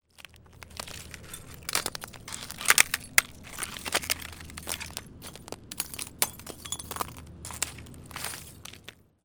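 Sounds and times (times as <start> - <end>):
breaking: 0.0 - 9.0.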